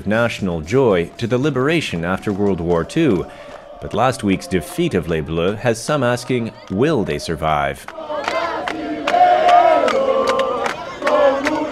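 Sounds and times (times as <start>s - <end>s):
sharp claps or bangs: 0.0s - 4.4s, 7.8s - 11.7s
speech: 0.0s - 8.3s
large crowd of soccer fans chanting and cheering: 0.0s - 11.7s.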